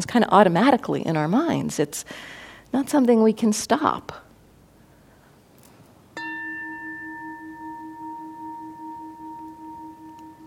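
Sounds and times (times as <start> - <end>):
speech: 0.0 - 4.3
bell ringing: 6.2 - 10.4.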